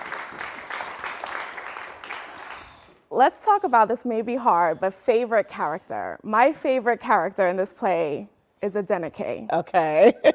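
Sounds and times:
audience applause: 0.0s - 2.9s
speech: 3.1s - 10.3s
laughter: 10.0s - 10.3s.

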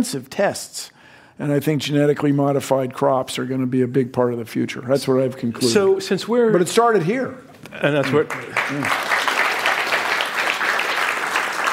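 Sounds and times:
speech: 0.0s - 9.1s
audience applause: 8.0s - 11.7s.

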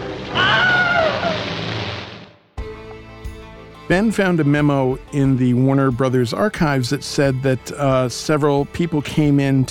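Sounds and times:
stock film scream sound effect: 0.3s - 1.4s
speech: 3.9s - 9.7s.

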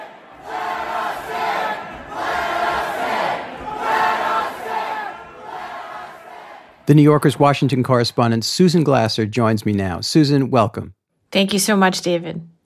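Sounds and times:
protesters shouting at a rally in Michigan: 0.0s - 6.8s
speech: 6.9s - 12.5s.

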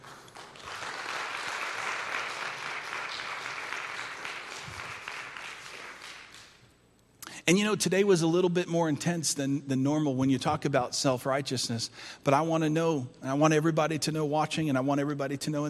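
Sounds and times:
audience applause: 0.0s - 6.6s
speech: 7.5s - 15.6s.

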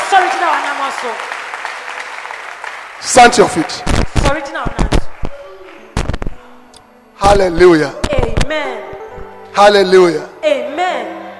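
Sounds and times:
audience clapping hands: 0.0s - 6.5s
speech: 1.0s - 1.4s, 3.0s - 4.9s, 7.2s - 8.9s, 9.6s - 10.3s.

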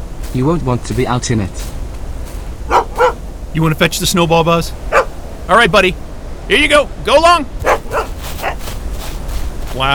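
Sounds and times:
steady hiss: 0.0s - 9.9s
speech: 0.4s - 1.8s, 3.6s - 4.9s, 5.5s - 7.6s, 9.8s - 9.9s
puppy yapping: 2.7s - 3.2s, 4.9s - 5.2s, 7.6s - 8.6s.

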